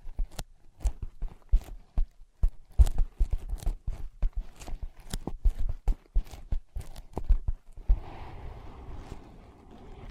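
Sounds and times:
ear pads being tapped: 0.0 - 7.8
rubbing and scratching: 0.0 - 10.1.

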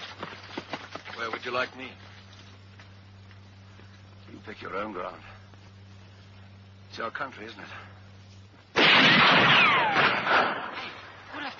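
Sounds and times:
speech: 1.2 - 2.1, 4.4 - 5.3, 7.0 - 8.0
rifle gunfire: 8.8 - 11.1.

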